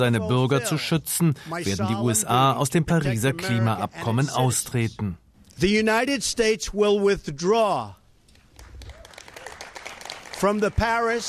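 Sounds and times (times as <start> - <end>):
speech: 0.0 - 8.0, 10.4 - 11.2
applause in the Rose Garden: 8.4 - 11.2.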